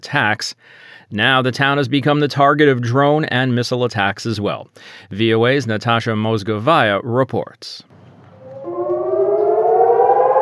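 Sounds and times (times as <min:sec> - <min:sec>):
speech: 0:00.1 - 0:08.0
civil defense siren wailing a rocket-attack warning in southern Israel: 0:07.9 - 0:10.3.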